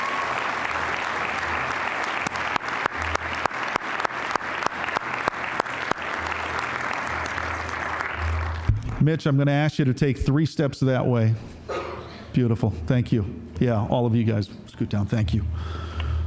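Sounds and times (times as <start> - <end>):
audience applause: 0.0 - 9.1
speech: 9.0 - 11.6, 12.4 - 15.9.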